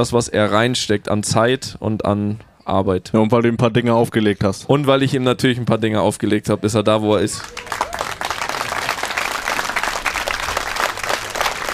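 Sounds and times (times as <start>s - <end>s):
speech: 0.0s - 7.8s
audience applause: 7.1s - 11.7s.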